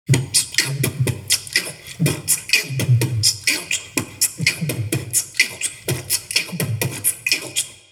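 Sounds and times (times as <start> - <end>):
beatboxing: 0.1 - 7.9.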